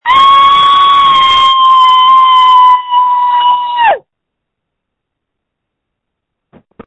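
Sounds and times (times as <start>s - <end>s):
person screaming: 0.0s - 4.0s.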